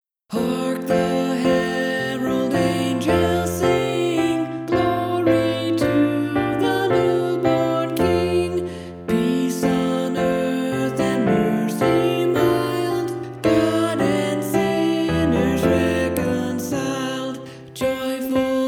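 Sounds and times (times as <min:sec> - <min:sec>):
alto voice singing: 0:00.3 - 0:18.6.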